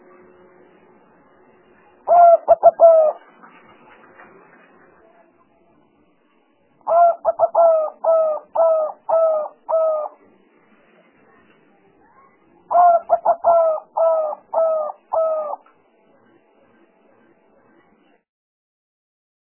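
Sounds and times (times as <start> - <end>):
Spotted Dove cooing: 2.1 - 3.2, 6.8 - 10.2, 12.7 - 15.6.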